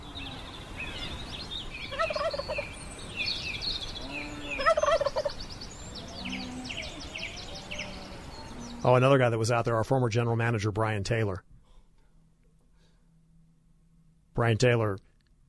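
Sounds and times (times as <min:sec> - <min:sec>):
birds chirping and calling: 0:00.0 - 0:11.3
wild turkey gobbling: 0:01.9 - 0:02.7, 0:04.4 - 0:05.4
speech: 0:08.9 - 0:11.5, 0:14.4 - 0:15.4.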